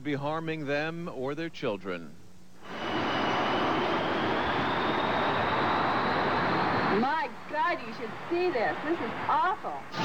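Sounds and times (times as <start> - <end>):
speech: 0.0 - 2.2, 7.0 - 10.0
large jet aircraft passing low near a runway beside homes: 2.6 - 7.1.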